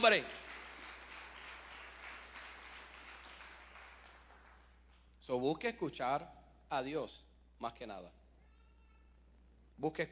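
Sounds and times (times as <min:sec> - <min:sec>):
speech: 0:00.0 - 0:00.4, 0:05.3 - 0:08.2, 0:09.8 - 0:10.1
audience applauding: 0:00.0 - 0:04.8.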